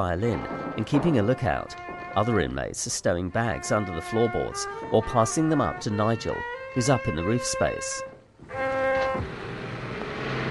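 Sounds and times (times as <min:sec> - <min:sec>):
speech: 0:00.0 - 0:09.4
truck carrying German troops speeding through camp gates: 0:08.8 - 0:10.5.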